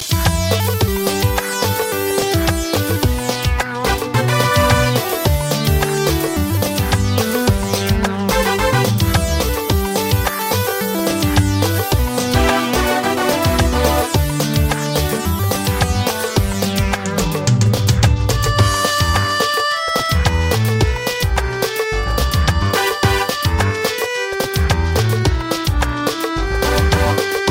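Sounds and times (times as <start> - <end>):
sweet music: 0.2 - 27.4.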